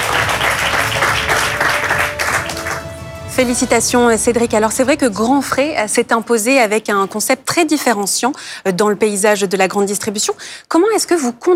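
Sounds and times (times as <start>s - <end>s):
audience applause for award winner: 0.0s - 5.3s
speech: 3.4s - 11.5s.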